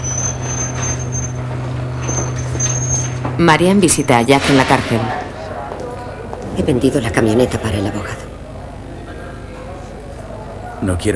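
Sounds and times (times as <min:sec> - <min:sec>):
remote-controlled garage door closing with motorized drone: 0:00.0 - 0:06.5
speech: 0:03.4 - 0:05.2, 0:06.6 - 0:08.2, 0:10.8 - 0:11.1.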